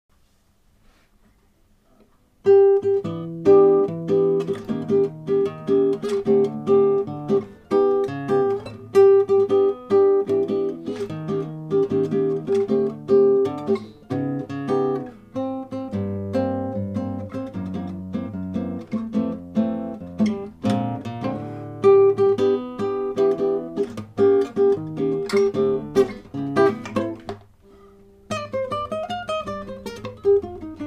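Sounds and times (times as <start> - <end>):
guitar solo: 2.4 - 30.8.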